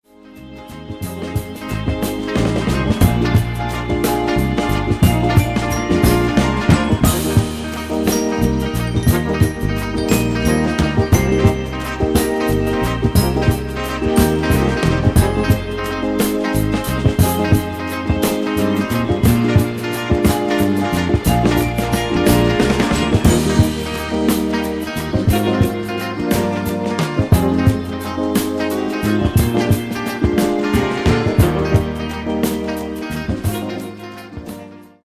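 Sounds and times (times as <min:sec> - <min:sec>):
instrumental music: 0:00.0 - 0:35.0.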